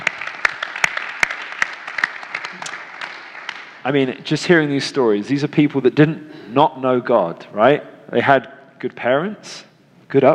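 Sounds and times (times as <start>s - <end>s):
round of applause from a crowd: 0.0s - 3.8s
speech: 3.8s - 10.3s.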